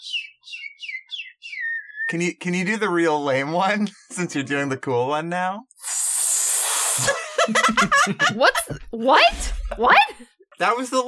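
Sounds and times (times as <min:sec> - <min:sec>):
person whistling an imitation of a bird call: 0:00.1 - 0:02.1
speech: 0:02.1 - 0:05.7, 0:07.0 - 0:11.0
laughter: 0:07.0 - 0:09.0.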